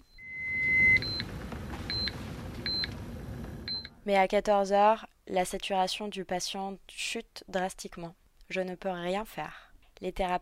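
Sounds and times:
patient monitor alarm beeping: 0:00.0 - 0:03.9
low rumble: 0:00.1 - 0:04.0
speech: 0:04.0 - 0:10.4.

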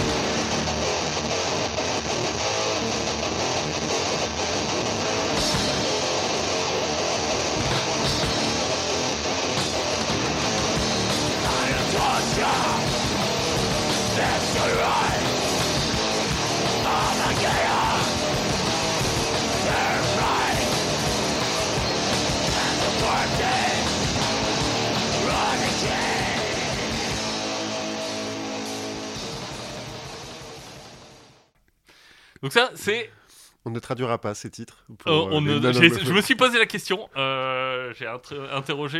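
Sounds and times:
extreme metal song with screamed vocals: 0:00.0 - 0:29.8
speech: 0:32.5 - 0:38.9.

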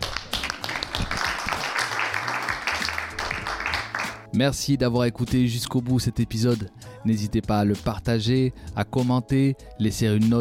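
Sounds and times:
audience applause: 0:00.0 - 0:04.2
speech: 0:04.4 - 0:10.4.

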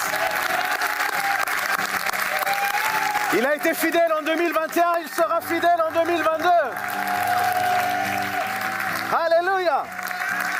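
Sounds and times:
audience applauding and cheering: 0:00.0 - 0:10.5
speech: 0:03.3 - 0:06.9.

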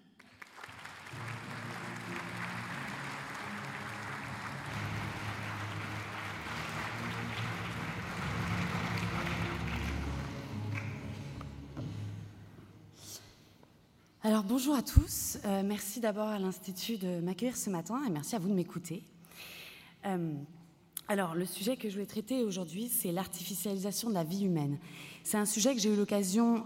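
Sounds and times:
audience applause: 0:00.2 - 0:12.1
speech: 0:14.3 - 0:26.6.

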